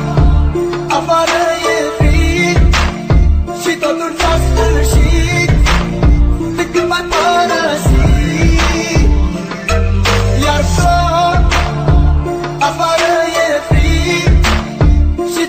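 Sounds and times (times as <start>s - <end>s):
Arabic ringtone melody: 0.2s - 15.3s.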